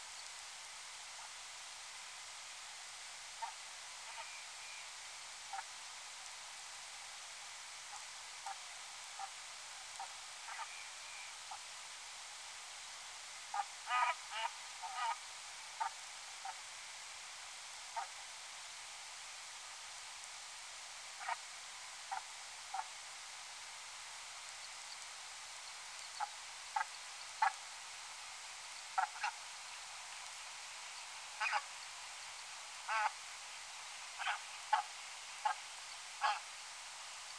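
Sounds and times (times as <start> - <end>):
steady hiss: 0.0 - 37.3
Brant honking calls: 13.5 - 15.2, 29.0 - 29.4, 31.4 - 31.6, 32.9 - 33.2, 34.2 - 35.6, 36.2 - 36.4.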